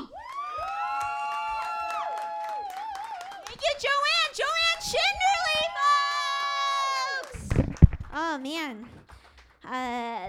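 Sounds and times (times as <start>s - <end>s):
audience whoops and shouted voices for a comedy act: 0.0s - 3.6s, 4.3s - 7.4s
audience applause for a comedy act: 0.0s - 10.2s
speech: 3.6s - 5.3s, 8.2s - 9.0s, 9.7s - 10.2s.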